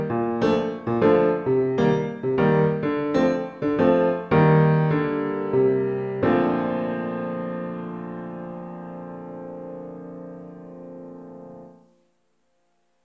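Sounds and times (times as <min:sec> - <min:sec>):
waltz accompaniment: 0:00.0 - 0:08.8.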